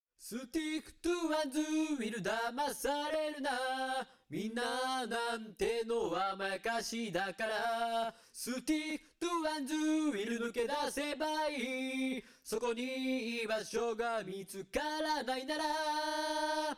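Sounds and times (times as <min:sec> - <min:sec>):
vocals: 0:00.2 - 0:16.7.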